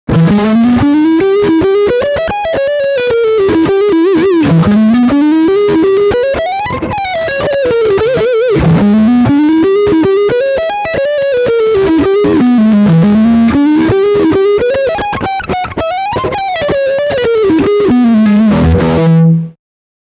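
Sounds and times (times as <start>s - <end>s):
electric guitar lick on front humbucker pickup: 0.1s - 19.6s.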